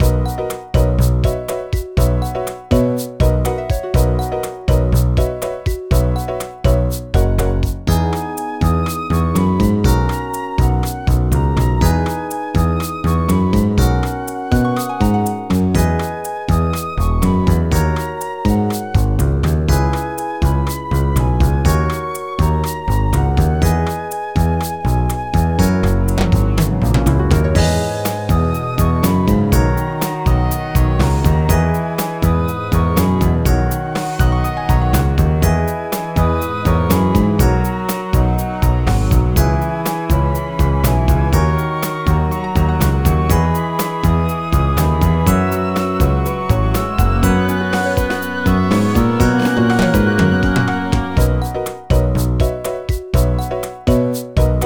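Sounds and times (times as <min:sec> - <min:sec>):
staff roll background music: 0:00.0 - 0:54.6.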